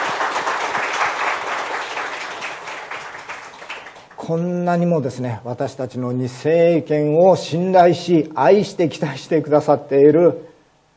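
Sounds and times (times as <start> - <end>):
audience applause: 0.0 - 4.2
speech: 4.3 - 10.5.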